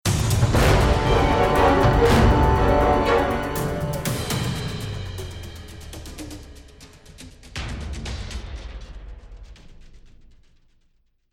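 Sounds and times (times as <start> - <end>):
lost round music: 0.3 - 7.5.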